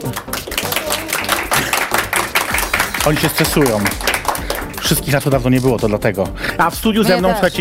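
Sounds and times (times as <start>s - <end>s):
group of people clapping: 0.0s - 5.9s
speech: 3.1s - 4.1s, 4.9s - 7.5s.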